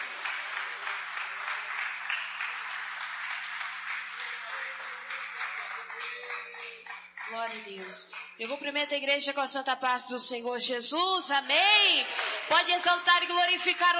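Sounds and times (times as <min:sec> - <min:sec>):
audience applauding: 0:00.0 - 0:08.4
speech: 0:07.3 - 0:13.9.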